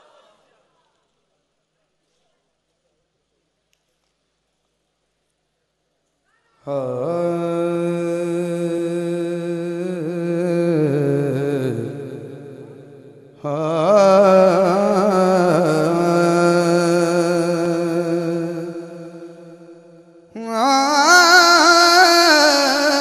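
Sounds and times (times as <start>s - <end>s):
Urdu naat recitation: 6.3s - 22.9s.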